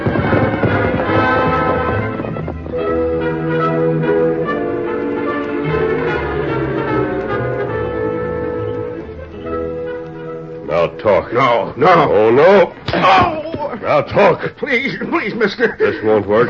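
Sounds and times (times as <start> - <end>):
horse Silver hoofbeats being ridden off: 0.0 - 7.8
orchestral music with bell-like tones: 0.0 - 11.8
speech: 11.1 - 16.4.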